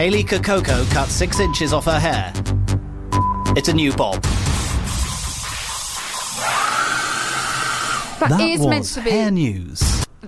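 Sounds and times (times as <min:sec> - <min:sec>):
speech: 0:00.0 - 0:02.6, 0:03.5 - 0:04.6, 0:08.2 - 0:10.2
hairdryer blowing: 0:05.8 - 0:08.2.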